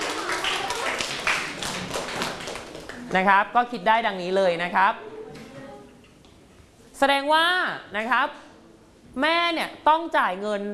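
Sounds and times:
class clapping for themselves: 0.0s - 3.1s
speech: 3.1s - 5.1s, 7.0s - 8.4s, 9.2s - 10.7s.

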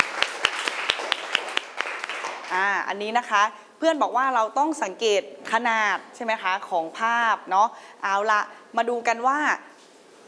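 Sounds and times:
classroom applause: 0.0s - 2.6s
speech: 2.5s - 9.7s.

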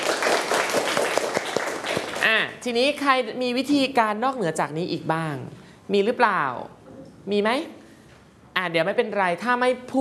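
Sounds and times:
classroom of students clapping for a classmate: 0.0s - 2.3s
speech: 2.2s - 7.8s, 8.6s - 9.9s.

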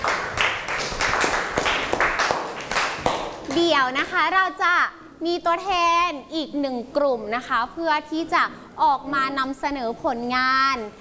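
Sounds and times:
audience applause: 0.0s - 3.3s
speech: 3.8s - 10.9s.

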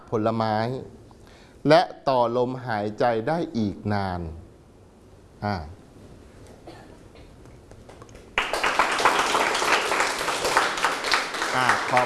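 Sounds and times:
speech: 0.1s - 1.0s, 1.6s - 4.4s, 5.4s - 5.8s, 11.6s - 12.0s
audience applause: 8.4s - 12.0s.

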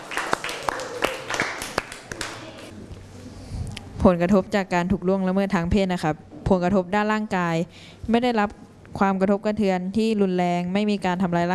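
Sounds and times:
audience clapping: 0.0s - 2.7s
speech: 4.0s - 11.5s.

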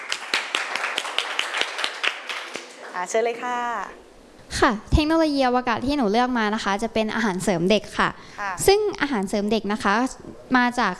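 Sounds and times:
audience clapping: 0.0s - 3.0s
speech: 3.0s - 10.9s.

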